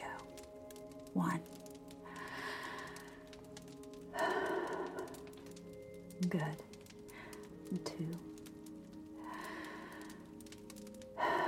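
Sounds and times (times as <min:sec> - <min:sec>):
speech: 0:01.2 - 0:01.6, 0:06.2 - 0:06.7
deep breath during a guided breathing exercise: 0:02.0 - 0:03.4, 0:04.1 - 0:05.4, 0:07.1 - 0:07.5, 0:09.2 - 0:10.5, 0:11.1 - 0:11.4.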